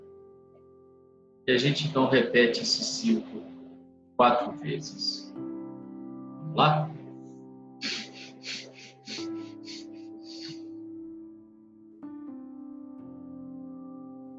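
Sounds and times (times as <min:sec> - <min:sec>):
speech: 0:01.5 - 0:03.5, 0:04.2 - 0:05.5, 0:06.6 - 0:07.0
soft sustained musical drone: 0:01.5 - 0:11.0
breathing exercise, quick sharp sniffs through the nose: 0:07.8 - 0:10.6
long breath in a breathing exercise: 0:07.8 - 0:10.6.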